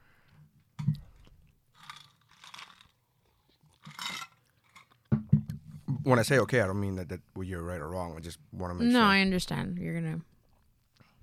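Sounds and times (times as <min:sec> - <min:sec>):
person chewing dark chocolate: 0:00.9 - 0:05.1
speech: 0:06.1 - 0:10.3.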